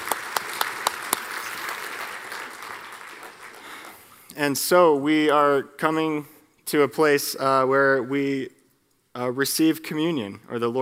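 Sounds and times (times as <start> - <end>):
audience applause: 0.0 - 4.2
speech: 4.4 - 8.6, 9.2 - 10.7.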